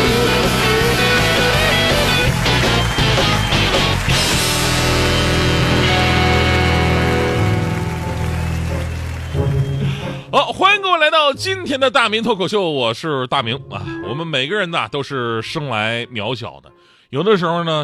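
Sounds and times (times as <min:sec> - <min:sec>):
applause welcoming the host: 0:00.3 - 0:10.3
speech: 0:11.4 - 0:17.8.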